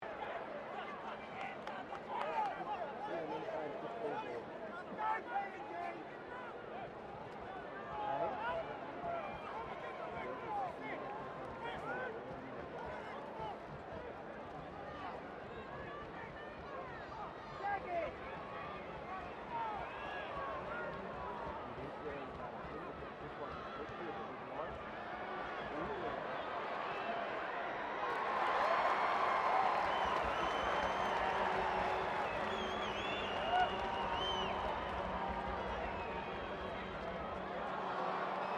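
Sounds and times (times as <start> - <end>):
distant crowd of 15,000 at a Rugby World Cup game: 0.0 - 38.5.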